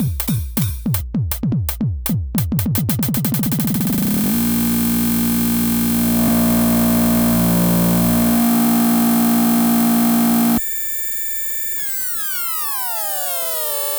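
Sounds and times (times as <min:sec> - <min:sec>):
glitch 909 drum machine: 0:00.0 - 0:10.6.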